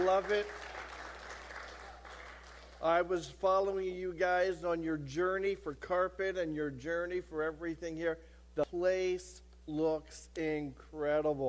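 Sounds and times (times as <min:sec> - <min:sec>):
speech: 0:00.0 - 0:00.6, 0:02.8 - 0:11.4
audience applause: 0:00.0 - 0:02.8.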